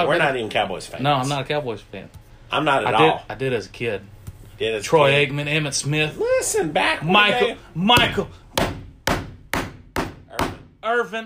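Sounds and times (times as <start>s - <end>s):
speech: 0.0s - 8.4s, 10.9s - 11.2s
knocking on wood: 7.9s - 10.7s.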